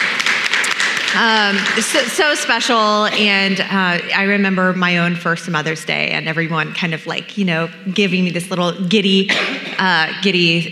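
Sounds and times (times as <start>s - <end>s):
audience applause for mothers: 0.0s - 2.5s
speech: 1.1s - 10.7s.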